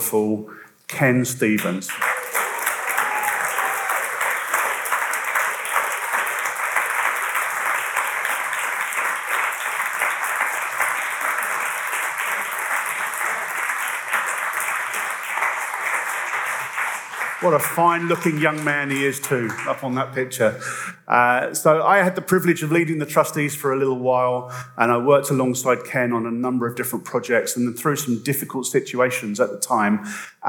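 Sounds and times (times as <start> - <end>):
speech: 0.1 - 2.1, 17.4 - 30.4
audience applause: 1.9 - 20.2.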